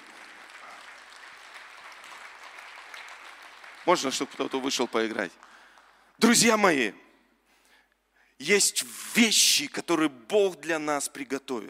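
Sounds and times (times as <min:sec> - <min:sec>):
audience applause: 0:00.0 - 0:06.0
speech: 0:03.9 - 0:05.5, 0:06.2 - 0:07.0, 0:08.4 - 0:11.6.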